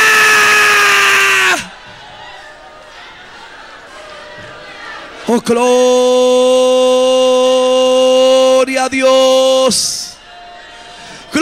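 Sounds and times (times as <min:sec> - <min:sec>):
loud crowd roaring and shouting in praise: 0:00.0 - 0:11.4
speech: 0:05.3 - 0:06.9, 0:08.8 - 0:10.0.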